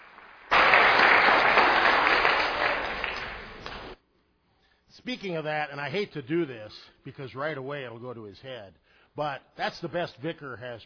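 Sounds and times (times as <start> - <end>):
audience applause: 0.0 - 4.0
speech: 5.0 - 10.8.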